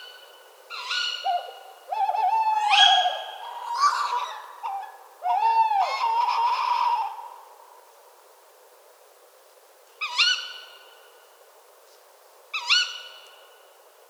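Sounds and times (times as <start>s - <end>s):
tawny owl pair giving shrill upslurred ke-wick calls in a park in France: 0.0s - 7.5s, 10.0s - 10.9s, 12.6s - 13.4s.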